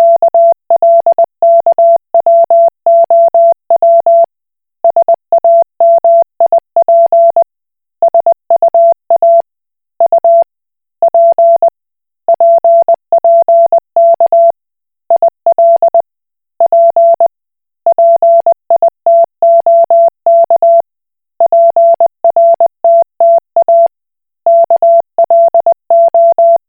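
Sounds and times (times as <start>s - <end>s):
Koch Morse code beeps: 0.0s - 4.3s, 4.9s - 7.4s, 8.1s - 9.4s, 10.0s - 10.4s, 11.1s - 11.7s, 12.3s - 14.5s, 15.2s - 16.0s, 16.6s - 17.3s, 17.9s - 20.8s, 21.4s - 23.9s, 24.5s - 26.6s.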